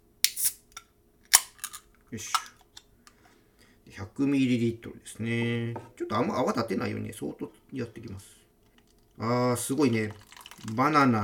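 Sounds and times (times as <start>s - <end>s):
beer can being opened: 0.2s - 2.9s
speech: 2.1s - 2.5s, 4.0s - 8.4s, 9.2s - 11.2s.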